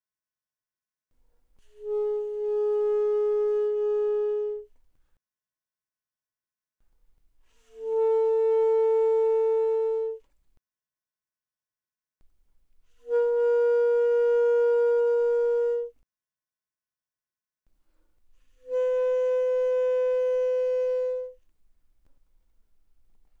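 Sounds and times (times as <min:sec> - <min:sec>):
alto saxophone notes without vibrato played pianissimo: 0:01.7 - 0:04.7, 0:07.6 - 0:10.2, 0:13.0 - 0:16.0, 0:18.6 - 0:21.4.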